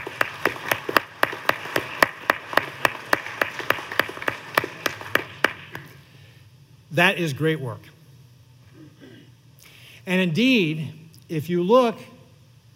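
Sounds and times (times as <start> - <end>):
round of applause: 0.0 - 5.9
speech: 7.0 - 7.9, 10.1 - 12.1.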